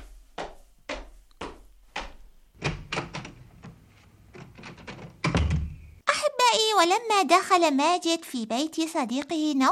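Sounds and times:
door being opened: 2.0s - 6.0s
speech: 6.8s - 9.7s.

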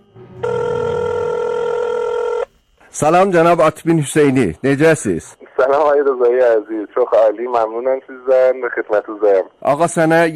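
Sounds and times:
telephone ringing for an incoming call: 0.4s - 2.5s
speech: 3.0s - 10.3s.

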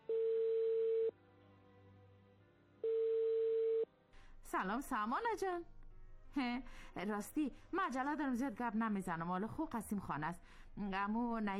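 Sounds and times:
telephone ringing tone on an outgoing call: 0.0s - 1.1s, 2.8s - 3.9s
speech: 4.5s - 11.5s.

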